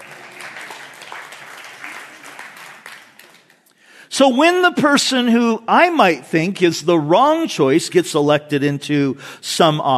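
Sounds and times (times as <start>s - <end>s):
audience applauding: 0.0s - 3.7s
speech: 4.2s - 9.9s.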